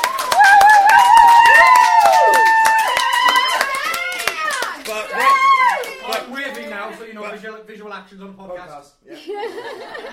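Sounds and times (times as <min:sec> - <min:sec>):
small group round of applause: 0:00.0 - 0:06.9
speech: 0:08.1 - 0:08.9
laughter: 0:09.1 - 0:10.1.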